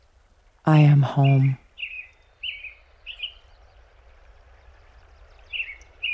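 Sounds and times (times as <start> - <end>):
soft background hiss: 0.0 - 6.1
speech: 0.7 - 1.6
American robin singing: 0.7 - 3.5, 5.4 - 6.1.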